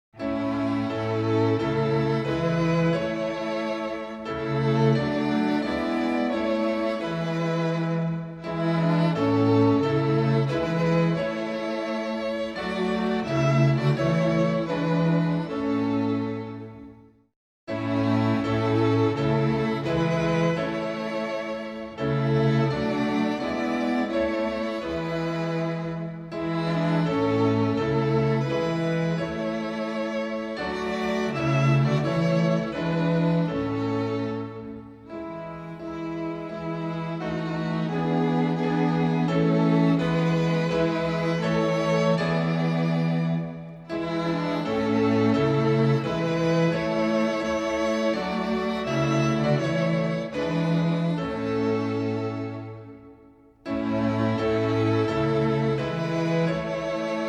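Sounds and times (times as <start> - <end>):
instrumental hymn: 0.2 - 57.2.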